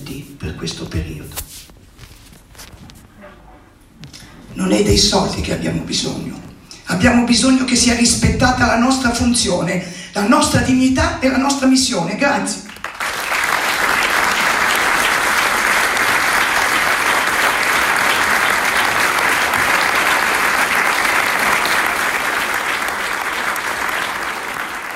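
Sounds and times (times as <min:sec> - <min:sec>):
speech: 0:00.1 - 0:01.6, 0:04.6 - 0:12.7
theatre audience applause: 0:12.7 - 0:24.9.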